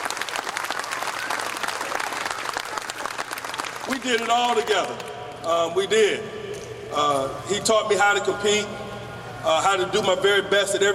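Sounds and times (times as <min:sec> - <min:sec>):
audience applause: 0:00.0 - 0:05.0
speech: 0:03.9 - 0:08.8, 0:09.4 - 0:10.9.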